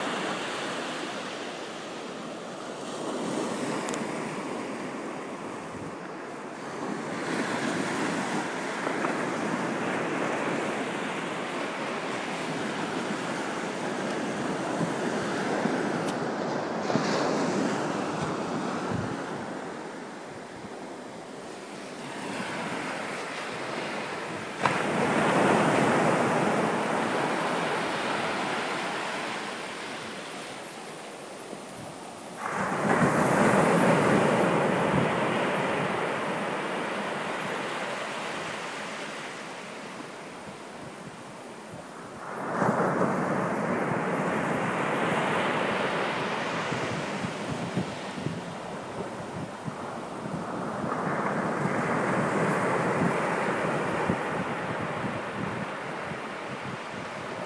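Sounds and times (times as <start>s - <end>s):
waves on Newborough beach: 0.0s - 57.4s.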